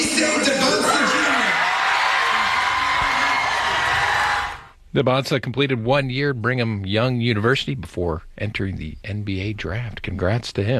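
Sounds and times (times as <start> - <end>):
students cheering at a watch party: 0.0 - 4.7
speech: 5.0 - 10.7.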